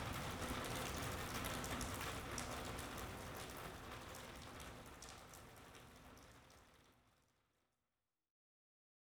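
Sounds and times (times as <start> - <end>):
rain: 0.0 - 7.3.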